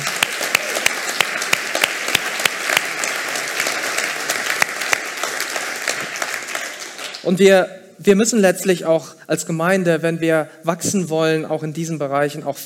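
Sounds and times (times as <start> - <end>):
audience applause: 0.0 - 7.3
speech: 7.3 - 12.6.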